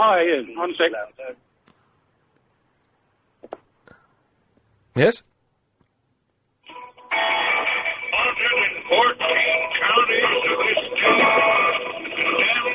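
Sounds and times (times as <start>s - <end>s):
speech: 0.0s - 1.5s, 5.0s - 5.3s, 7.2s - 12.7s
rock song played down a telephone line: 6.7s - 12.7s.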